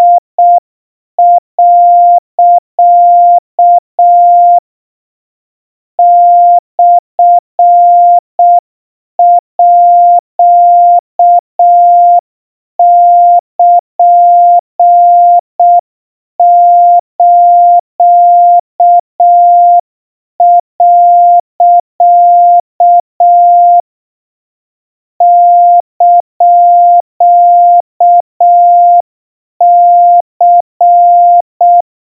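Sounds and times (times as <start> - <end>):
Morse code tones at 700 Hz: 0.0 - 0.6, 1.2 - 4.6, 6.0 - 8.6, 9.2 - 12.2, 12.8 - 15.8, 16.4 - 19.8, 20.4 - 23.8, 25.2 - 29.0, 29.6 - 31.8.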